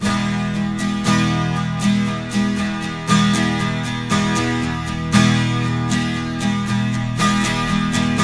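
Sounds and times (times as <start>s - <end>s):
12-string guitar F major chord: 0.0s - 8.2s.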